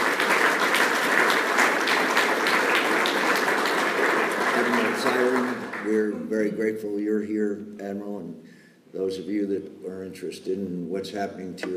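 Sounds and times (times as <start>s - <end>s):
audience applause: 0.0s - 6.2s
speech: 6.3s - 11.7s.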